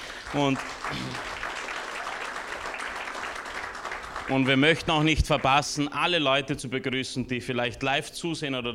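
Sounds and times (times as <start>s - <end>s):
applause: 0.0s - 5.8s
speech: 0.3s - 1.4s, 4.3s - 8.7s.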